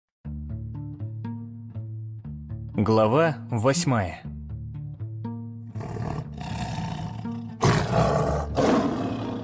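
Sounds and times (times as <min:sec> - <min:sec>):
speech: 0:02.8 - 0:04.3
big cat roaring: 0:05.8 - 0:09.4.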